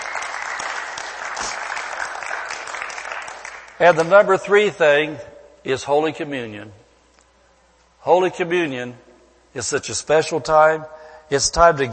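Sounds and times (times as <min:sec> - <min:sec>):
audience clapping: 0:00.0 - 0:04.2
speech: 0:03.8 - 0:06.8, 0:08.0 - 0:11.9.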